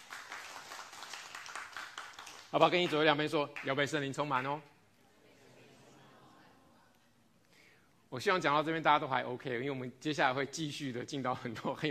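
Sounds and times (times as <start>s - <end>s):
audience clapping: 0.0s - 4.4s
speech: 2.5s - 4.7s, 8.1s - 11.8s.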